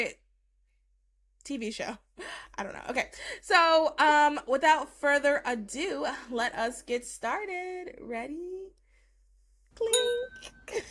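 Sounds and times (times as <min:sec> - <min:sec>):
speech: 0:01.5 - 0:08.8, 0:09.8 - 0:10.8
glasses clinking: 0:09.8 - 0:10.8.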